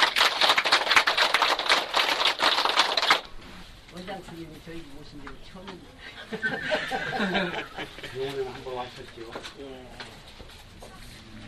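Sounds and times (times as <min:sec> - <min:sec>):
audience applause: 0:00.0 - 0:03.3
speech: 0:04.2 - 0:10.2
laughter: 0:06.0 - 0:08.6.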